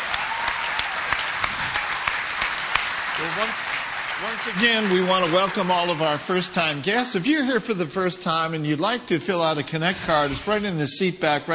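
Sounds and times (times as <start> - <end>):
church congregation clapping for a choir: 0.0 - 6.9
speech: 3.2 - 11.5.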